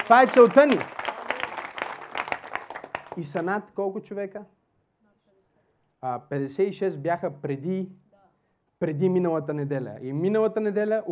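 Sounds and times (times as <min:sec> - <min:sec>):
audience applause: 0:00.0 - 0:03.4
speech: 0:00.1 - 0:01.0, 0:03.2 - 0:04.6, 0:06.0 - 0:08.0, 0:08.8 - 0:11.1.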